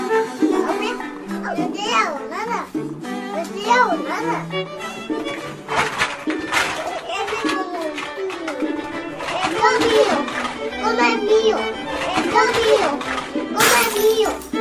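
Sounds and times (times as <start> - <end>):
lively children's voices: 0.2 - 14.5
glass shattering: 13.6 - 14.5.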